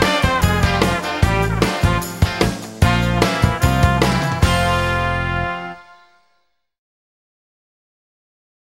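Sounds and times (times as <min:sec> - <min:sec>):
taxi trumpet horn: 0:00.0 - 0:06.6.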